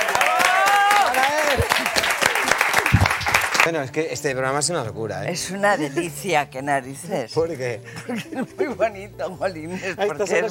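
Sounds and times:
applause: 0.0s - 3.7s
speech: 3.7s - 10.4s.

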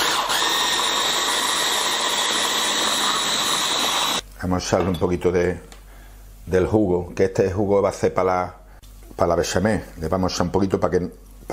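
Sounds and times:
blender grinding vegetables: 0.0s - 4.2s
speech: 4.4s - 5.7s, 6.5s - 11.5s.

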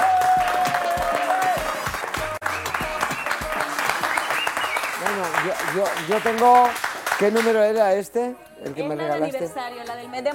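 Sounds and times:
audience applause: 0.0s - 7.7s
speech: 5.7s - 10.3s.

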